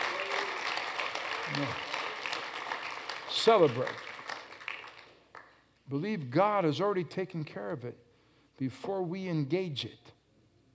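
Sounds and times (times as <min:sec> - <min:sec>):
audience clapping hands: 0:00.0 - 0:05.8
speech: 0:01.5 - 0:01.8, 0:03.4 - 0:04.1, 0:05.9 - 0:08.0, 0:08.6 - 0:10.2.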